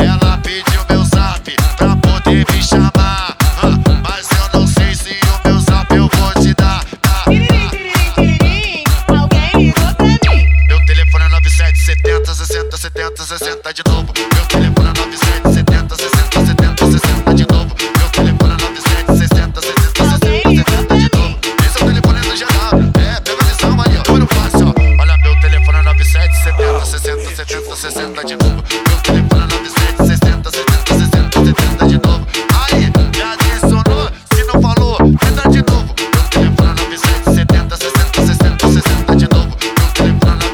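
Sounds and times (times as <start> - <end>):
loud pounding music track with deep bass: 0.0 - 40.5
telephone ringtone: 10.2 - 13.7, 24.8 - 27.8.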